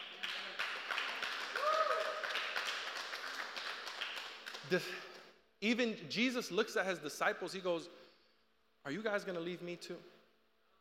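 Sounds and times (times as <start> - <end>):
audience clapping: 0.0 - 5.3
speech: 4.7 - 8.0, 8.8 - 10.2.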